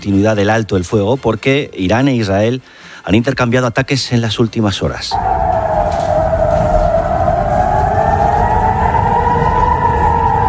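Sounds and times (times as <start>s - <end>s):
speech: 0.0s - 5.3s
air raid sirens in Israel: 5.1s - 10.4s.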